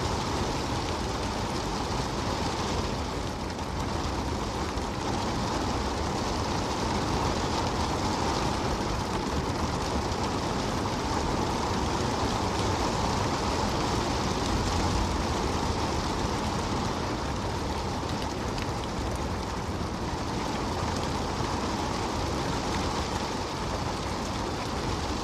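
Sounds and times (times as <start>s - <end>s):
steady rain hiss: 0.0s - 25.2s.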